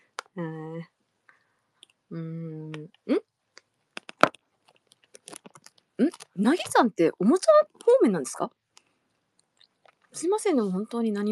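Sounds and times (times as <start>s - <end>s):
speech: 0.4s - 1.0s, 2.1s - 2.5s, 6.0s - 8.6s, 10.2s - 11.3s
Frugra granola cereal being eaten: 3.6s - 8.0s.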